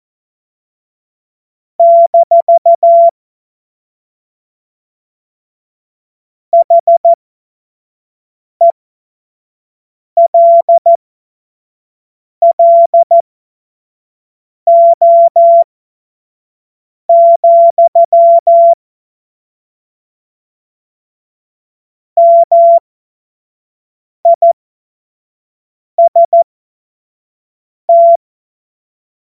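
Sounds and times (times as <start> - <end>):
CW Morse code beeps: 1.8 - 3.1, 6.6 - 7.2, 10.2 - 11.0, 12.4 - 13.2, 14.7 - 15.6, 17.1 - 18.8, 22.2 - 22.8, 24.3 - 24.6, 26.0 - 26.4, 27.9 - 28.2.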